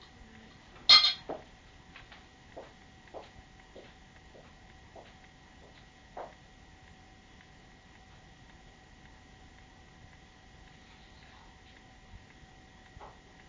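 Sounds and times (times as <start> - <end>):
faint tonal hum: 0.0 - 13.4
spoons clinking against cups while making coffee: 0.9 - 1.3.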